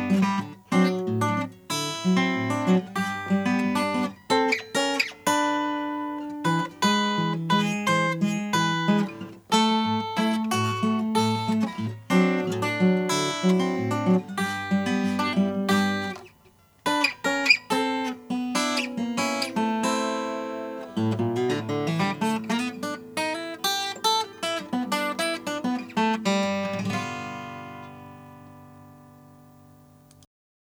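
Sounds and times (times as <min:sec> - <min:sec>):
Gibson J45 cherry burst guitar: 0:00.0 - 0:30.3.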